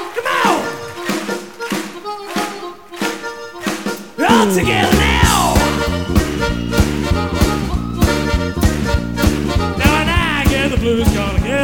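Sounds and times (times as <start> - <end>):
hand claps: 0.0 - 4.2
sustained music: 0.0 - 11.6
speech: 4.4 - 5.2.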